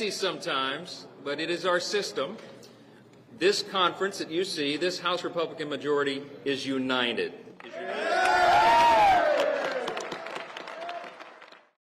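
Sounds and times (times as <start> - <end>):
speech: 0.0 - 2.6, 3.4 - 8.1
Republicans clapping: 7.6 - 11.8.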